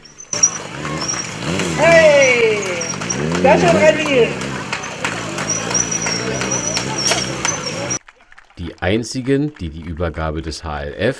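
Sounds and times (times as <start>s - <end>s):
stunt motorcycle engine revving: 0.0s - 8.0s
steady noise: 0.0s - 11.1s
speech: 3.4s - 4.4s, 8.8s - 11.1s.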